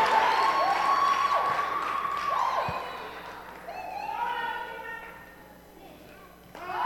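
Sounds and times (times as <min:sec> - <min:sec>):
audience clapping: 0:00.0 - 0:03.7
audience cheering: 0:00.0 - 0:04.4.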